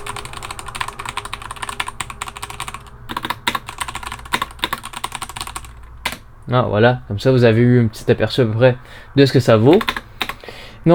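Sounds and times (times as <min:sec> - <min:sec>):
quick typing on a computer keyboard: 0:00.0 - 0:06.2, 0:09.7 - 0:10.4
speech: 0:06.5 - 0:10.0.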